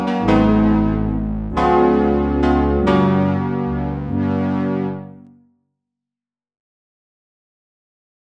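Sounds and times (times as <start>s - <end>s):
Christmas carol played on synthesizer: 0.0s - 5.3s.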